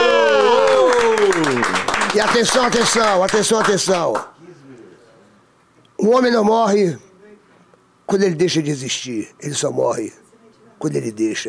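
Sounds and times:
audience applause: 0:00.0 - 0:04.3
speech: 0:02.2 - 0:04.6, 0:06.0 - 0:07.1, 0:08.1 - 0:10.2, 0:10.8 - 0:11.4.

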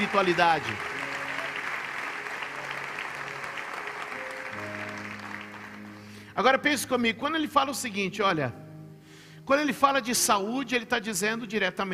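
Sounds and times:
speech: 0:00.0 - 0:01.0, 0:06.4 - 0:08.6, 0:09.5 - 0:11.9
audience applauding: 0:00.0 - 0:06.2.

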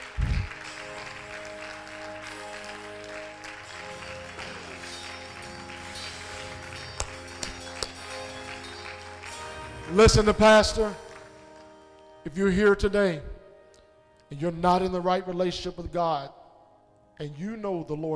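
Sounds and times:
audience clapping: 0:00.0 - 0:12.3
sustained keyboard chords: 0:00.0 - 0:18.1
speech: 0:09.9 - 0:11.0, 0:12.2 - 0:13.3, 0:14.3 - 0:16.4, 0:17.2 - 0:18.1.

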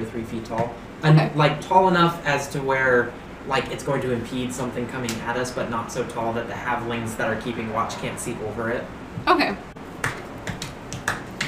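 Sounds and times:
speech: 0:00.0 - 0:09.7
hands clapping: 0:10.0 - 0:11.4.

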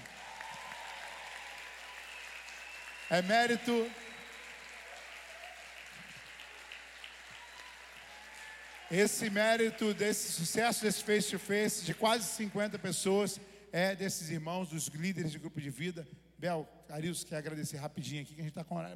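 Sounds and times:
audience applause: 0:00.0 - 0:12.8
speech: 0:03.1 - 0:04.0, 0:08.9 - 0:18.9.

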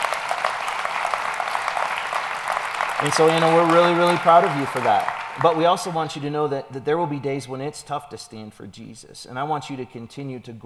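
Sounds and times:
audience applauding: 0:00.0 - 0:06.1
speech: 0:03.0 - 0:10.6.

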